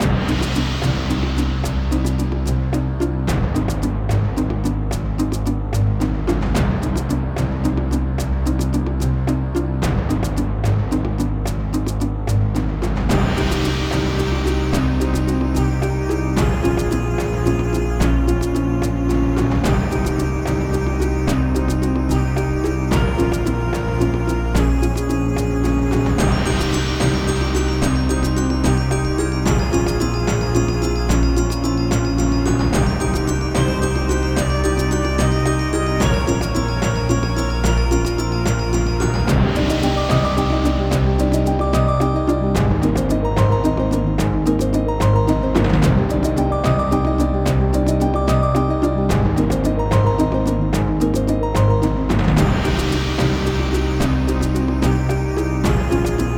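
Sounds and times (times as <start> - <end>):
map background music: 0.0 - 56.3.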